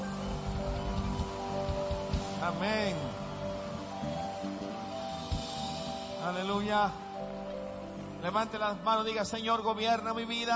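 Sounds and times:
applause: 0.0 - 5.4
speech: 2.4 - 3.2, 6.2 - 7.0, 8.2 - 10.5.

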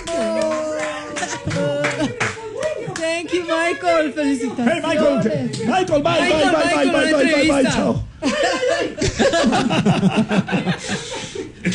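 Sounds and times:
applause: 0.0 - 3.1
laughter: 0.0 - 11.7
speech: 3.3 - 8.4, 9.2 - 11.2.

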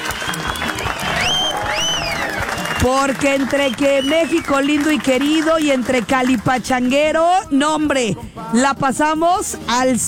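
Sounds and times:
audience applause: 0.0 - 6.4
speech: 2.8 - 10.0.

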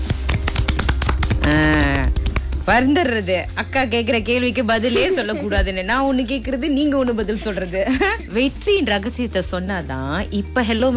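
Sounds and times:
hand claps: 0.0 - 2.7
speech: 2.7 - 10.9
laughter: 4.7 - 6.1, 7.1 - 8.5.

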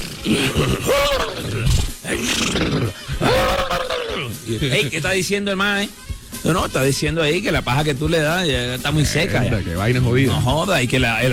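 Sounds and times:
man's voice imitating a horse whinnying: 0.0 - 5.0
speech: 0.2 - 3.2, 4.2 - 11.3
laughter: 0.3 - 5.4, 8.8 - 10.7.

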